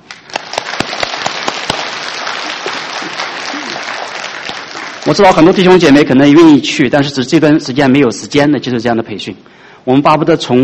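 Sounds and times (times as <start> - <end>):
audience applause: 0.0 - 6.0
speech: 5.1 - 10.6.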